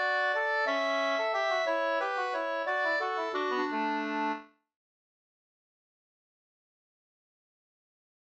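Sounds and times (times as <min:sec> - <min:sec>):
folk dance tune in D major: 0:00.0 - 0:04.5.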